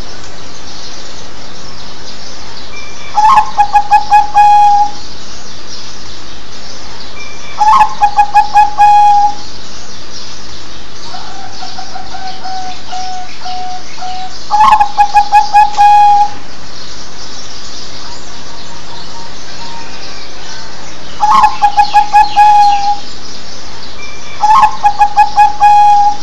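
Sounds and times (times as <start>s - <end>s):
zebra dove cooing: 3.2s - 5.0s, 7.6s - 9.4s, 11.1s - 16.4s, 21.2s - 23.0s, 24.4s - 26.2s.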